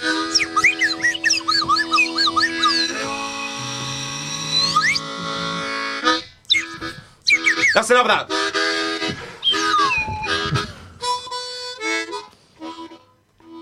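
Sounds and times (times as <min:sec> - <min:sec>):
slide whistle solo: 0:00.0 - 0:05.2, 0:06.0 - 0:11.6
speech: 0:07.8 - 0:08.4.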